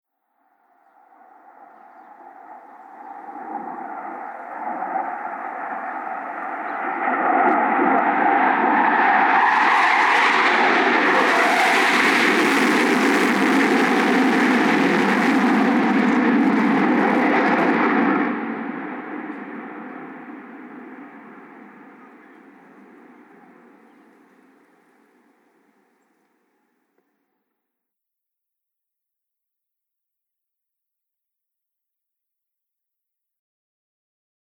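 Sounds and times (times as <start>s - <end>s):
war plane jet fighters with afterburners flying over: 1.4s - 26.0s.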